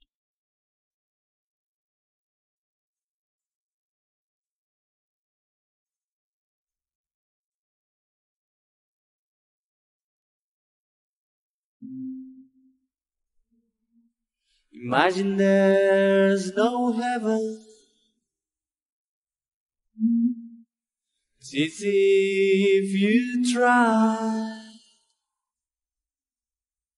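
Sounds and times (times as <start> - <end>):
person singing: 14.8 - 17.7, 21.5 - 24.8.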